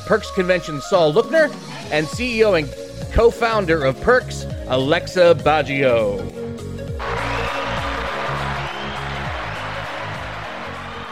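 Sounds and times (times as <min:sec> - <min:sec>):
speech: 0:00.1 - 0:06.4
small crowd applauding: 0:07.0 - 0:11.1.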